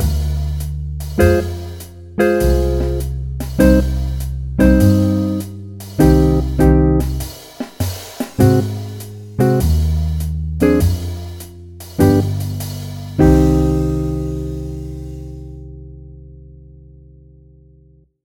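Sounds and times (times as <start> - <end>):
B-flat tied musical notes: 1.1 - 7.3, 8.4 - 10.0, 10.6 - 15.4.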